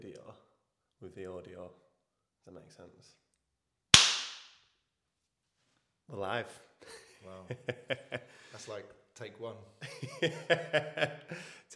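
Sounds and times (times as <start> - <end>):
speech: 1.0 - 3.3, 6.1 - 11.7
single hand clap for syncing: 4.0 - 4.6
laughter: 6.9 - 8.7, 9.8 - 11.6.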